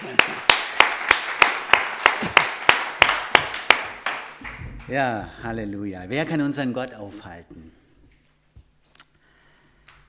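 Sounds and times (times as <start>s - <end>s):
audience clapping hands: 0.0s - 5.2s
speech: 4.9s - 7.8s.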